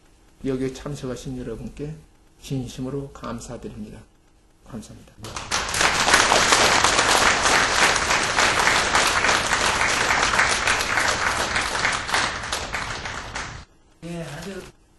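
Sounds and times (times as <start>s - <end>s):
speech: 0.4s - 4.1s, 4.7s - 5.4s
crowd applauding: 5.2s - 13.7s.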